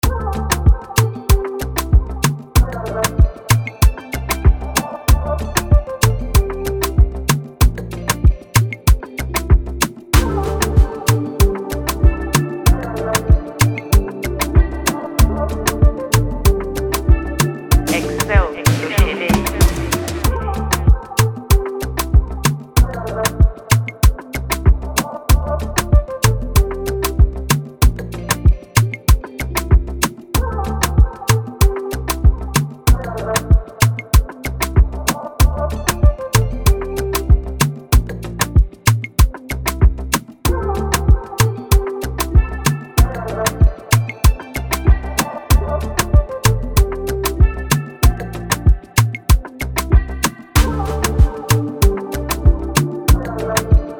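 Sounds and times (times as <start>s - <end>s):
music beat: 0.0s - 53.9s.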